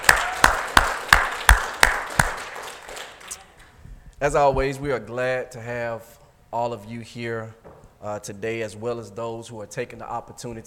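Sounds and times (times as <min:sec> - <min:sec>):
audience clapping hands in unison: 0:00.0 - 0:03.8
speech: 0:04.2 - 0:10.6.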